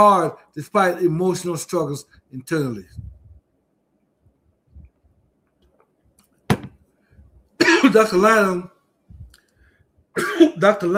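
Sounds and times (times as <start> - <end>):
speech: 0.0 - 3.1, 7.8 - 8.8, 10.2 - 10.9
woman coughing after something went down the wrong pipe: 7.6 - 8.0, 10.2 - 10.6.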